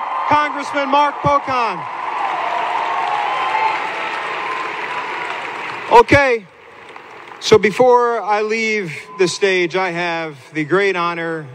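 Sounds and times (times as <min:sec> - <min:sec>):
audience applause: 0:00.0 - 0:07.4
speech: 0:00.3 - 0:02.0, 0:05.9 - 0:06.5, 0:07.4 - 0:11.5.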